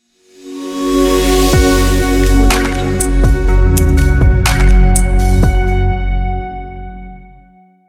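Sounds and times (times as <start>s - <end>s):
upbeat ambient logo reveal music: 0.4s - 6.7s.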